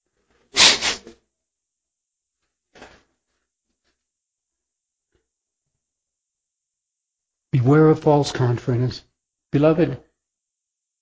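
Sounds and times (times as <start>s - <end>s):
person blowing their nose: 0.5s - 1.1s
speech: 7.6s - 10.1s.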